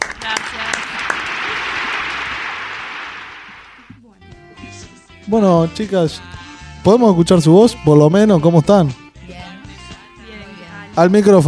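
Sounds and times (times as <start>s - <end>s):
audience clapping: 0.0s - 3.9s
speech: 5.3s - 9.0s, 11.0s - 11.4s.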